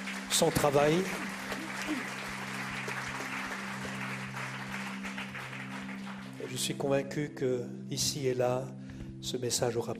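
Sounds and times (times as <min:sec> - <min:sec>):
audience applause: 0:00.0 - 0:06.7
speech: 0:00.4 - 0:01.3, 0:01.9 - 0:02.1, 0:06.5 - 0:09.9.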